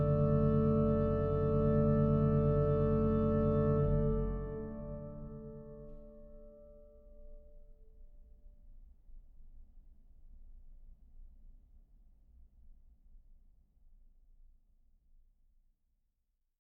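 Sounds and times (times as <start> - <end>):
organ chorale prelude: 0.0 - 7.1.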